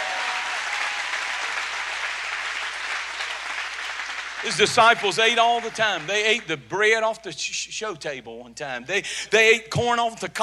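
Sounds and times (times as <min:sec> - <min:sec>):
audience clapping hands: 0:00.0 - 0:06.5
speech: 0:04.4 - 0:10.4.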